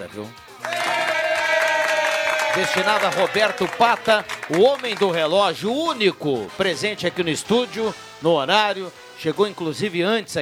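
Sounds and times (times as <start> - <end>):
speech: 0.1 - 1.0, 2.6 - 10.4
applause: 0.6 - 5.6.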